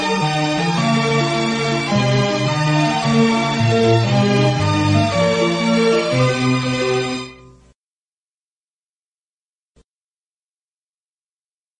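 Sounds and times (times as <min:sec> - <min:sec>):
instrumental music: 0:00.0 - 0:07.7.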